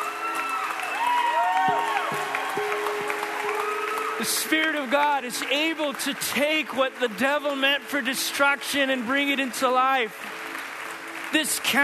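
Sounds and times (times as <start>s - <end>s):
audience cheering with whoops and shouting: 0.0s - 5.3s
audience applauding: 0.0s - 11.8s
speech: 4.2s - 10.4s, 11.3s - 11.8s.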